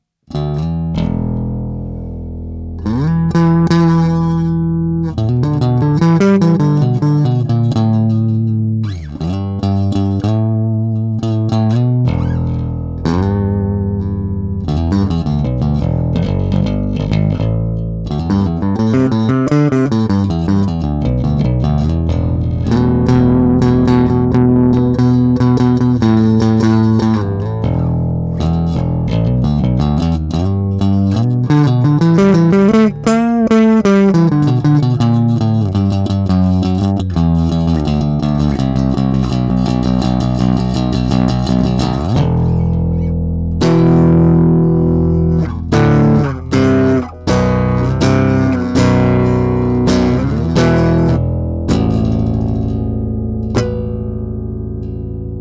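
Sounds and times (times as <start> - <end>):
bass through MB 4 SBK Deluxe Series Studio Bass Amp: 0.0 - 55.3.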